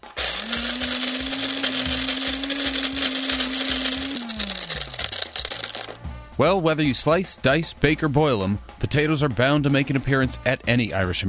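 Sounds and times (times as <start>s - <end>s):
grinder whirring to draw a prize winner: 0.0s - 6.0s
speech: 6.4s - 11.2s.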